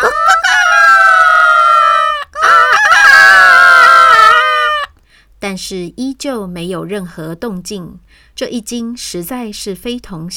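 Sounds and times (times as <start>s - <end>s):
people imitating rooster crows: 0.0s - 4.9s
speech: 5.6s - 10.3s.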